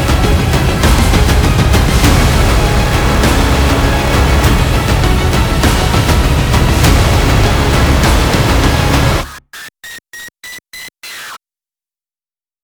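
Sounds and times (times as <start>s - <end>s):
tense danger music: 0.0s - 9.7s.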